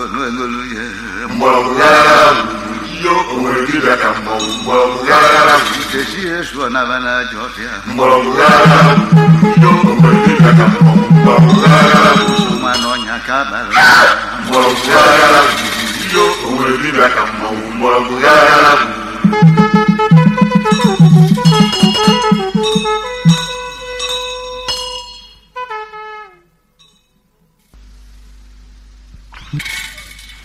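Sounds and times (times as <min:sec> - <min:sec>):
forest chants: 0:00.0 - 0:23.5.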